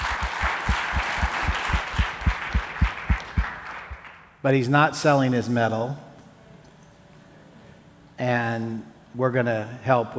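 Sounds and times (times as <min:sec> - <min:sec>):
audience hand clapping: 0:00.0 - 0:04.4
speech: 0:04.4 - 0:06.1, 0:08.2 - 0:10.1.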